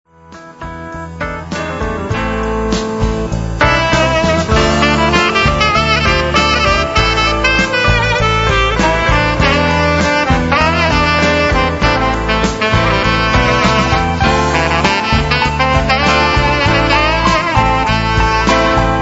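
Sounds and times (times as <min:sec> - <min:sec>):
saxophone: 0:01.4 - 0:18.9.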